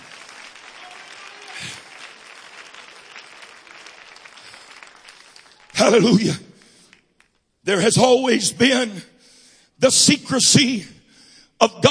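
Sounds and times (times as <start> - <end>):
audience clapping hands: 0.0 - 7.5
speech: 5.9 - 6.5, 7.7 - 9.1, 9.8 - 11.0, 11.6 - 11.8.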